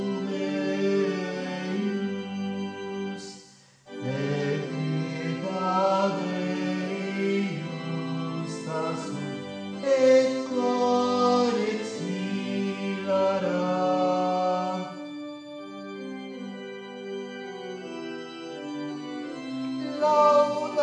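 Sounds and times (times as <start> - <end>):
sopranos singing: 0.0 - 2.2, 3.9 - 15.0, 19.8 - 20.8.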